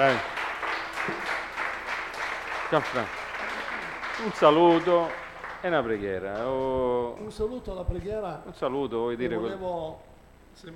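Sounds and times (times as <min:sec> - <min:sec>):
speech: 0:00.0 - 0:00.4, 0:01.0 - 0:01.3, 0:02.7 - 0:03.2, 0:04.2 - 0:10.7
audience applause: 0:00.0 - 0:06.7.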